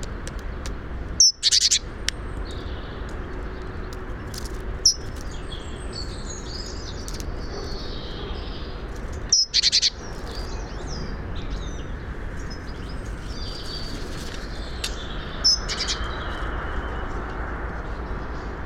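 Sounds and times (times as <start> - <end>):
faint other birdsong: 0.3 - 18.6
great tit buzzy churr calls: 1.2 - 1.9, 4.8 - 11.1, 13.3 - 17.0.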